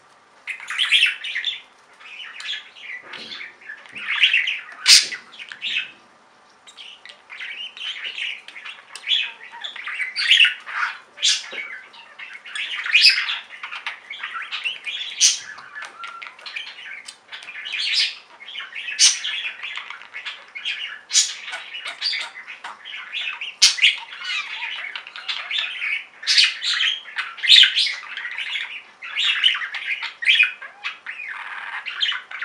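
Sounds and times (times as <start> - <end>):
budgerigar chatter: 0.5 - 32.4.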